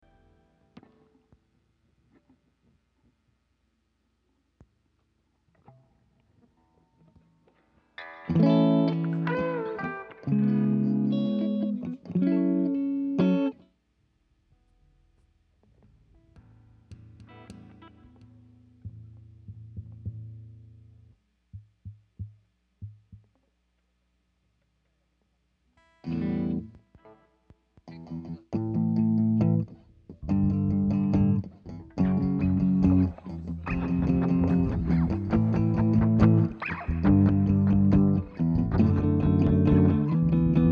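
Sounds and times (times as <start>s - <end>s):
guitars: 0.0s - 3.2s, 4.9s - 13.8s, 14.5s - 23.5s, 25.8s - 40.7s
bass: 14.6s - 23.3s, 27.9s - 40.7s.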